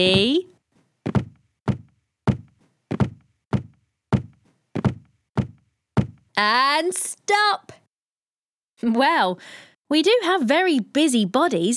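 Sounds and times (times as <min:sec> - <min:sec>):
feet stamping on the floor: 0:00.0 - 0:00.4, 0:01.0 - 0:06.2
speech: 0:00.0 - 0:00.5, 0:06.4 - 0:07.8, 0:08.8 - 0:11.7.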